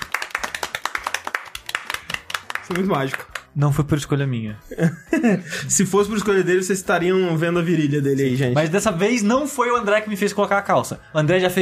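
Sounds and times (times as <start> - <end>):
hand clapping: 0.0 - 3.6
speech: 2.7 - 11.5
laughter: 4.6 - 5.8.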